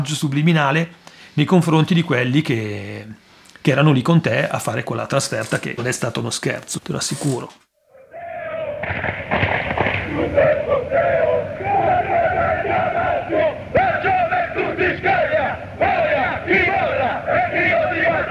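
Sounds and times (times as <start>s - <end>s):
speech: 0.0s - 7.6s
football fans chanting: 7.9s - 18.2s.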